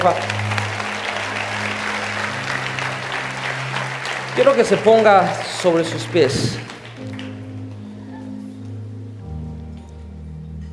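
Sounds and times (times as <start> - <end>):
speech: 0.0 - 0.4, 4.4 - 7.1
audience applause: 0.0 - 7.9.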